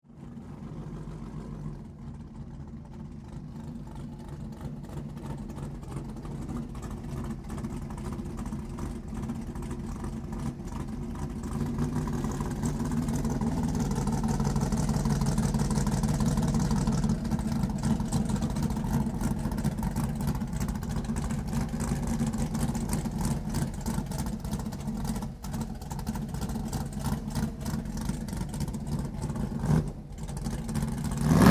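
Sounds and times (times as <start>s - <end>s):
dragster engine idling and warming up: 0.1s - 31.4s.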